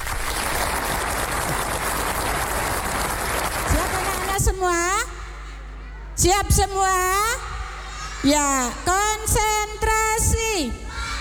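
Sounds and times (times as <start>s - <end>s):
audience clapping: 0.0s - 4.5s
speech: 6.2s - 7.4s, 8.2s - 10.8s.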